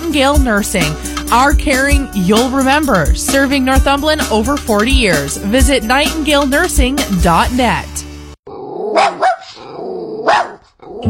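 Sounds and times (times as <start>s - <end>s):
speech: 0.1s - 8.0s
puppy growling: 8.5s - 11.0s
puppy barking in sharp high yaps: 8.8s - 10.8s.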